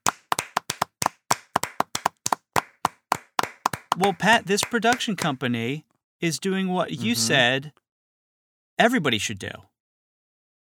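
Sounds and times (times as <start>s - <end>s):
hands clapping: 0.0s - 5.4s
speech: 4.0s - 7.8s, 8.8s - 9.7s.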